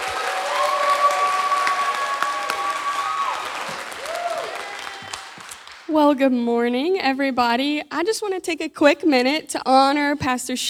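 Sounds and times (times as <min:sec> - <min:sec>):
audience hand clapping: 0:00.0 - 0:06.0
speech: 0:05.9 - 0:10.6.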